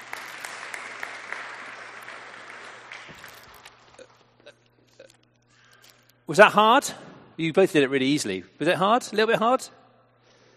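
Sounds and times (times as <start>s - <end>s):
audience clapping: 0.0s - 4.4s
speech: 6.3s - 9.8s.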